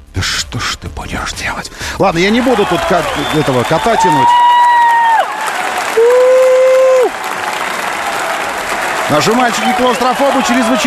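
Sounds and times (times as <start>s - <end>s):
speech: 0.5s - 4.5s, 9.1s - 10.8s
television studio audience applause: 2.1s - 10.8s.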